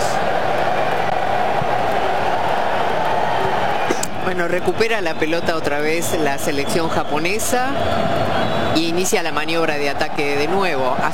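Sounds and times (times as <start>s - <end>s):
stadium crowd applauding and cheering: 0.0s - 11.1s
speech: 4.3s - 11.1s.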